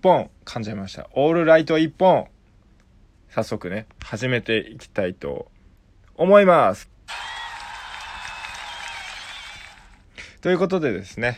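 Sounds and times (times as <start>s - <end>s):
speech: 0.0s - 2.3s, 3.3s - 5.5s, 6.2s - 7.3s, 10.4s - 11.3s
applause: 7.1s - 10.1s.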